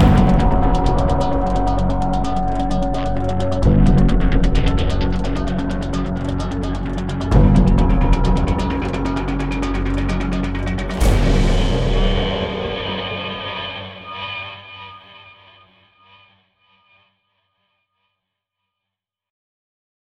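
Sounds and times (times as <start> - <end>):
mellow combat music: 0.0 - 14.9.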